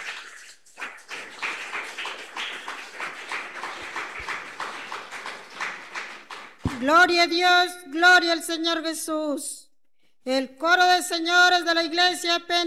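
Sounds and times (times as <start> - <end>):
audience applause: 0.0 - 6.7
speech: 6.8 - 9.6, 10.2 - 12.6.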